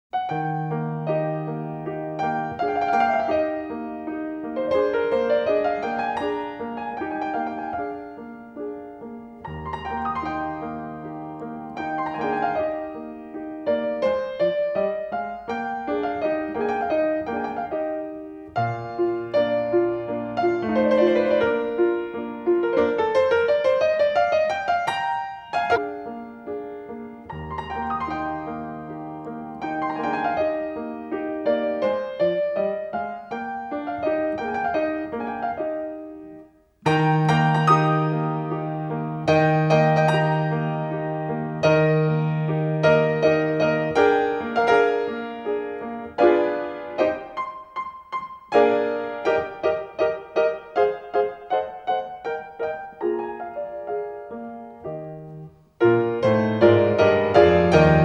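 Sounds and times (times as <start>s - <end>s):
piano polonaise in C: 0.1s - 58.0s.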